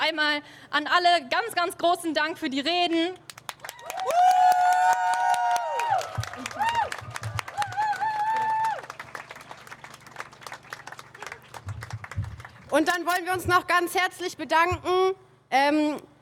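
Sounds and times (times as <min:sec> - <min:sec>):
speech: 0:00.1 - 0:03.3, 0:12.7 - 0:16.1
loud applause for the speeches: 0:03.5 - 0:12.7.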